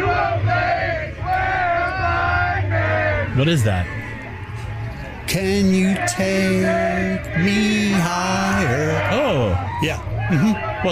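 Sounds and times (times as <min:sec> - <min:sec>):
team singing in locker room: 0:00.0 - 0:03.4, 0:05.2 - 0:09.8
cheering: 0:00.0 - 0:10.9
speech: 0:03.4 - 0:04.0, 0:05.3 - 0:10.9.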